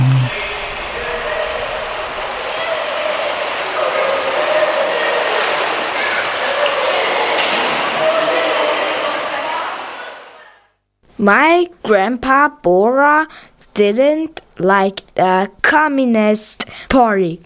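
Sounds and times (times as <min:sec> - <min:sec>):
indistinct voices at a swimming pool: 0:00.0 - 0:10.4
splashing water in a swimming pool: 0:00.0 - 0:10.4
speech: 0:11.2 - 0:17.4.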